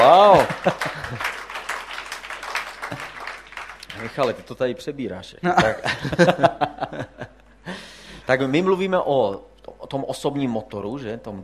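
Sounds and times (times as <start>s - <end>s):
laughter: 0.0s - 1.7s, 2.7s - 3.3s, 5.6s - 7.5s
audience applause for a speaker: 0.0s - 4.6s
speech: 0.4s - 1.4s, 4.2s - 7.1s, 8.3s - 11.4s.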